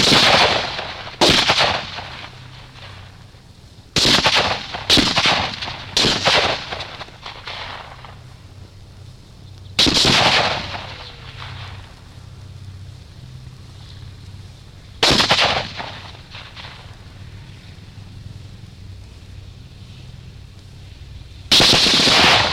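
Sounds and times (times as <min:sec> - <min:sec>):
machine gunfire: 0:00.0 - 0:02.9, 0:04.0 - 0:08.2, 0:09.8 - 0:11.8, 0:15.0 - 0:16.8, 0:21.5 - 0:22.5
rifle shots: 0:00.0 - 0:03.0, 0:04.0 - 0:08.2, 0:09.8 - 0:11.9, 0:15.0 - 0:16.9, 0:21.5 - 0:22.5.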